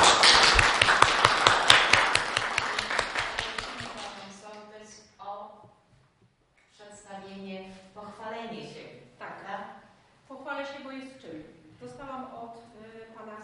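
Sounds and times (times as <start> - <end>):
crowd applauding: 0.0 - 4.3
people talking: 2.6 - 5.7, 6.8 - 13.4.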